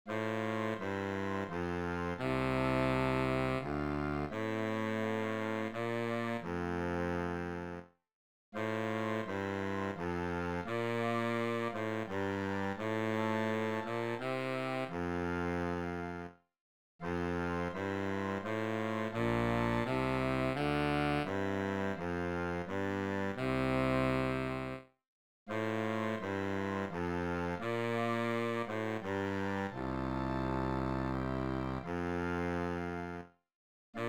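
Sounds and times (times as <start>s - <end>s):
tuba in E flat: 0.1s - 7.9s, 8.6s - 16.3s, 17.0s - 24.8s, 25.5s - 33.3s.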